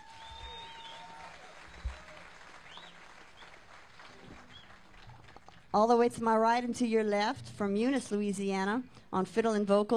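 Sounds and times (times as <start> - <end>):
audience applause greeting a musician on stage: 0.0 - 5.5
speech: 5.7 - 9.9.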